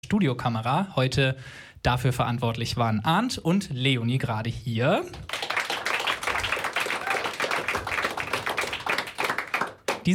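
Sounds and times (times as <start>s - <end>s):
speech: 0.0s - 5.4s
audience clapping: 5.1s - 10.1s.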